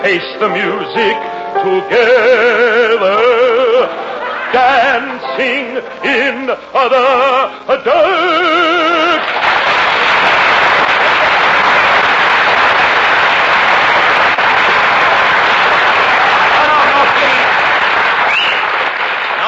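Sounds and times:
speech: 0:00.0 - 0:09.4
studio audience applause: 0:08.7 - 0:19.4.

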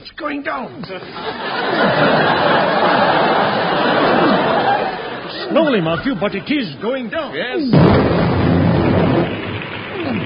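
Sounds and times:
speech: 0:00.2 - 0:02.5, 0:05.5 - 0:08.3
laughter: 0:01.0 - 0:07.4
rain starting to fall: 0:07.7 - 0:10.2.

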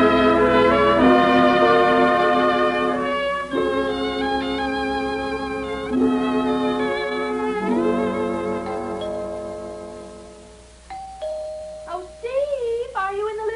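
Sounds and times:
steady high tone: 0:00.0 - 0:12.8
doorbell chime: 0:08.6 - 0:09.8, 0:10.9 - 0:12.2.

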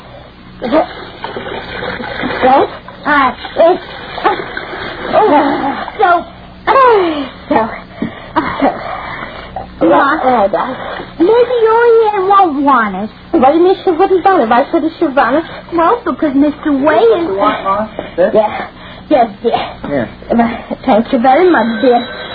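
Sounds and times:
speech: 0:00.6 - 0:01.1, 0:02.4 - 0:04.0, 0:05.2 - 0:06.3, 0:06.9 - 0:07.7, 0:09.8 - 0:22.1
bathwater splashing while someone is rinsed in a bath: 0:00.7 - 0:05.9.

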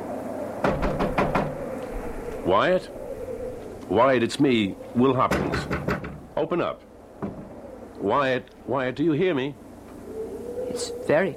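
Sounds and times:
hum: 0:00.0 - 0:11.3
knocking on a door: 0:00.6 - 0:01.6, 0:05.3 - 0:06.2, 0:07.2 - 0:07.5
speech: 0:02.5 - 0:03.0, 0:03.9 - 0:06.9, 0:08.0 - 0:09.6, 0:10.8 - 0:11.3.

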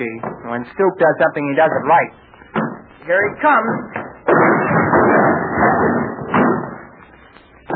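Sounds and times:
speech: 0:00.0 - 0:04.0
door forced open with heavy shoulder blow: 0:02.6 - 0:07.0.

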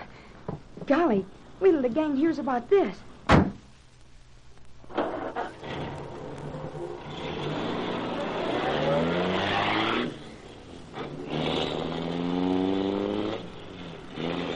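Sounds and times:
speech: 0:00.9 - 0:03.1
car engine roaring to life and driving off: 0:05.1 - 0:14.5.

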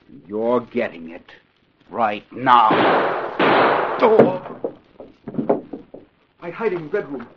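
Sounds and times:
speech: 0:00.3 - 0:04.6, 0:06.5 - 0:07.3
gunshot in a Green Hornet radio drama: 0:02.6 - 0:04.8.

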